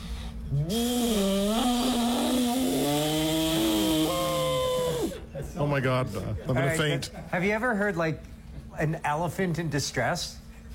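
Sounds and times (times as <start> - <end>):
person imitating a jet boat engine with their voice: 0.0 - 5.2
speech: 0.5 - 1.2, 5.7 - 10.7.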